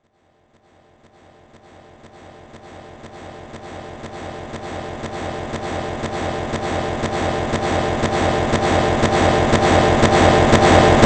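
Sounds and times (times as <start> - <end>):
suspense riser: 3.5 - 11.0.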